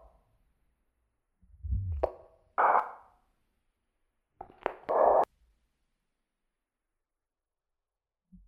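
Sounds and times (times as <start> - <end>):
noise: 1.5 - 3.1, 4.4 - 5.3.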